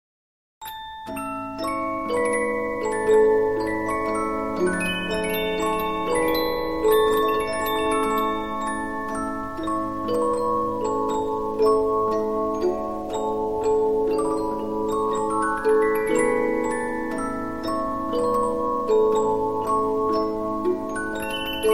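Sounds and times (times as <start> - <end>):
Polyphon 15-inch disc music box playing: 0.6 - 21.7.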